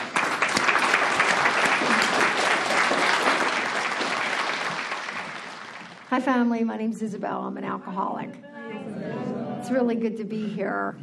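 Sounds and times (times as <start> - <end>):
audience applause welcoming a guest speaker at an AA meeting: 0.0 - 6.1
speech: 6.2 - 8.5, 9.7 - 11.0.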